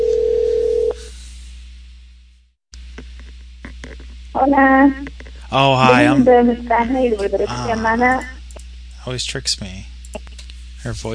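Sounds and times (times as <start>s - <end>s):
telephone tone after the other party hung up: 0.0s - 1.0s
speech: 4.4s - 8.4s, 9.0s - 10.2s, 10.8s - 11.1s.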